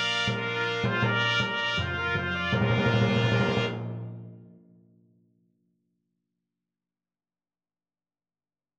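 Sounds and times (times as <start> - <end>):
imperial fanfare on trumpets: 0.0 - 4.4.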